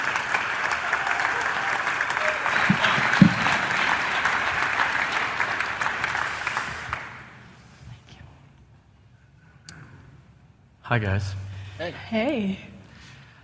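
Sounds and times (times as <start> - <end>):
church congregation clapping to welcome a pastor and his wife: 0.0 - 7.5
speech: 10.9 - 12.7.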